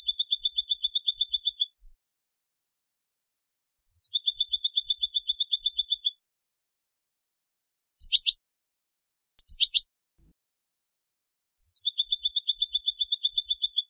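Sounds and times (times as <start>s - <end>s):
European goldfinch Carduelis carduelis singing with twittering bursts and trills: 0.0s - 1.9s, 3.8s - 6.3s, 8.0s - 8.4s, 9.4s - 9.9s, 11.6s - 13.8s.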